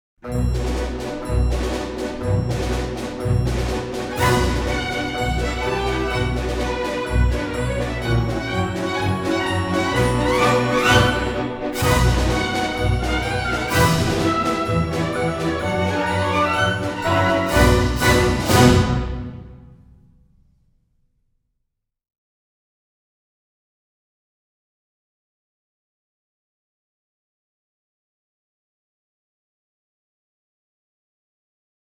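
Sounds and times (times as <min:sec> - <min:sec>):
ballet exam music for assemblés: 0:00.3 - 0:19.6.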